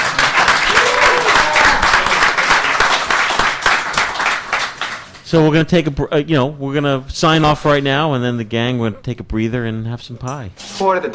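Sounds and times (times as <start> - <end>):
audience applause: 0.0 - 5.2
speech: 5.3 - 11.1.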